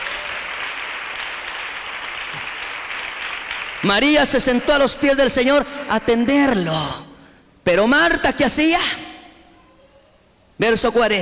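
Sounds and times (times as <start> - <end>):
audience applause: 0.0 - 4.2
speech: 3.8 - 9.0, 10.6 - 11.1.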